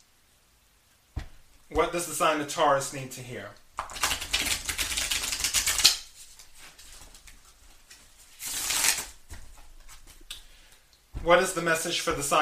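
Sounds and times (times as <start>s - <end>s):
speech: 1.7s - 4.0s, 11.2s - 12.4s
tarot cards being shuffled: 3.8s - 10.6s.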